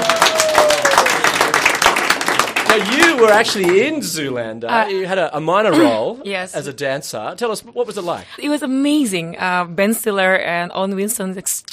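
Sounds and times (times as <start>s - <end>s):
audience applause: 0.0s - 4.3s
speech: 2.8s - 11.7s.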